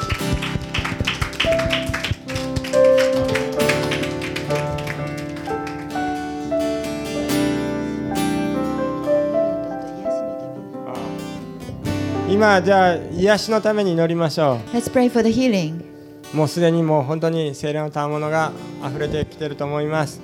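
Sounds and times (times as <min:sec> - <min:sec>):
crowd applauding: 0:00.0 - 0:07.6
sustained keyboard music: 0:00.0 - 0:14.0
speech: 0:12.4 - 0:20.2.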